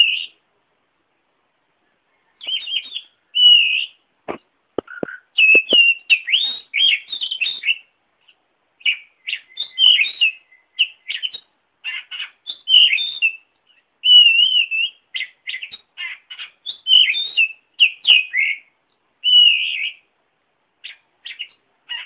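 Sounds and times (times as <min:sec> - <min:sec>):
oriental magpie-robin song: 0:02.3 - 0:04.0, 0:04.9 - 0:07.9, 0:08.8 - 0:20.0.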